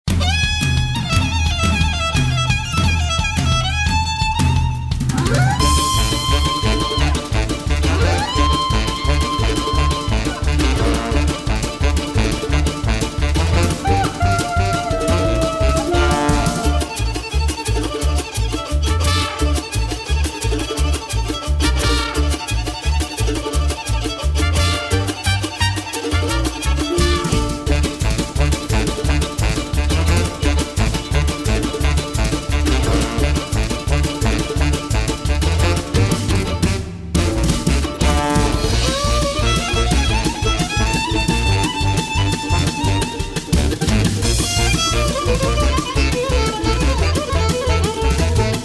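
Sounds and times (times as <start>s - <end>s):
klezmer folk music: 0.0s - 48.6s.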